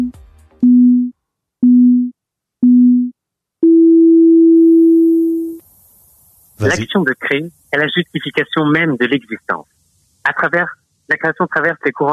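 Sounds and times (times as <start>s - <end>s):
beep tone: 0.0s - 5.6s
speech: 6.6s - 12.1s.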